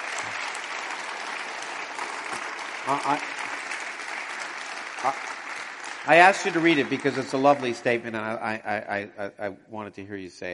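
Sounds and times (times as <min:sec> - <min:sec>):
audience applause: 0:00.0 - 0:08.2
speech: 0:02.9 - 0:03.4, 0:05.0 - 0:05.3, 0:06.0 - 0:10.5.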